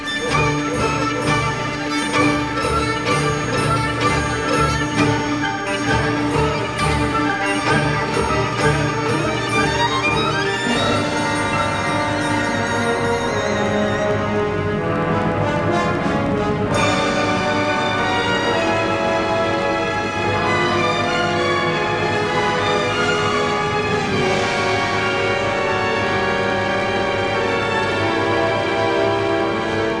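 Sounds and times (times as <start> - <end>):
classical music: 0.0 - 29.9.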